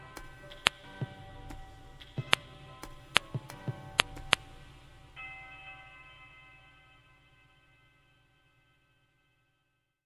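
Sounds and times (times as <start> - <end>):
programmable drum set interlude: 0.0 - 5.1.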